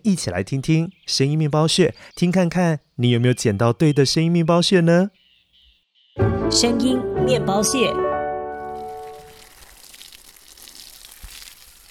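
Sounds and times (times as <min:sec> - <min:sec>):
speech: 0:00.0 - 0:05.2, 0:06.2 - 0:08.1
watering plants: 0:08.6 - 0:11.8.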